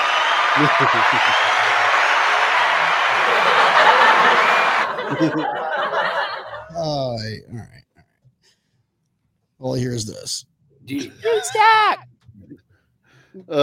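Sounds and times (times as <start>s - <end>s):
applause sound effect from button: 0.0s - 6.4s
laughter: 0.0s - 7.2s, 10.9s - 11.9s
speech: 0.6s - 2.0s, 4.2s - 7.9s, 9.6s - 12.6s, 13.4s - 13.6s.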